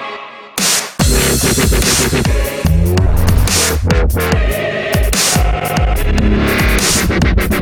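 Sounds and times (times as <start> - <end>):
boss intro theme music: 0.6 - 7.5.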